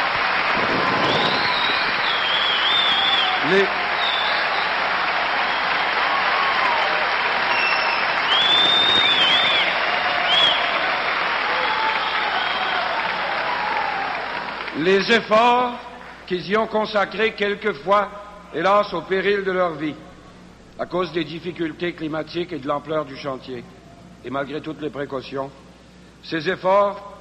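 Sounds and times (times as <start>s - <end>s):
crowd of workers applauding: 0.0s - 16.3s
shouts: 0.7s - 14.6s
whistles: 0.8s - 4.8s, 5.4s - 10.8s, 11.6s - 13.0s
speech: 3.5s - 3.8s, 14.8s - 20.1s, 20.8s - 25.6s, 26.2s - 27.1s.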